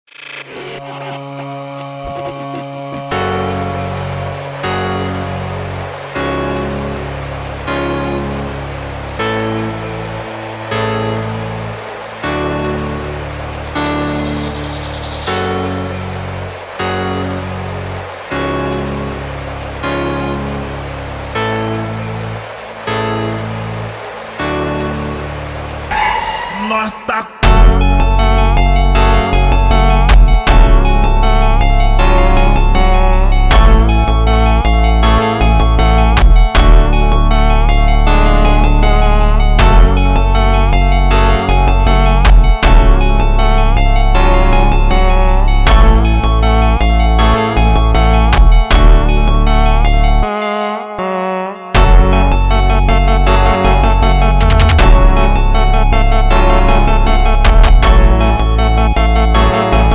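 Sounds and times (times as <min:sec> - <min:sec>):
ultra slowed reverb music: 0:00.6 - 0:59.9.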